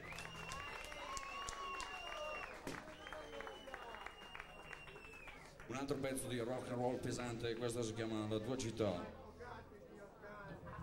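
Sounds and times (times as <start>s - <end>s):
sharp whistles: 0.0s - 5.4s
crowd applause: 0.0s - 5.8s
speech: 5.7s - 9.2s.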